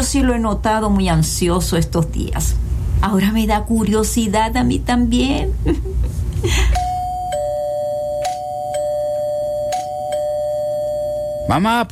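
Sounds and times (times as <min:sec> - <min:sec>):
speech: 0:00.0 - 0:06.8, 0:11.5 - 0:11.8
doorbell chiming: 0:06.8 - 0:11.7.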